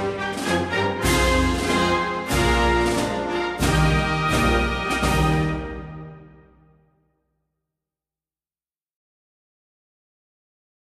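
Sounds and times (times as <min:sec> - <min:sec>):
national anthem music: 0:00.0 - 0:07.0.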